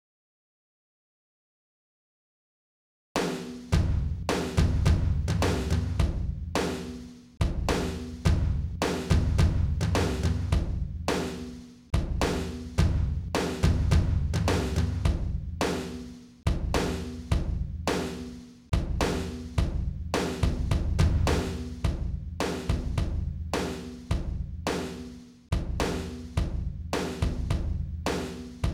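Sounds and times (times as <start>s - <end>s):
drum kit: 3.2s - 28.7s.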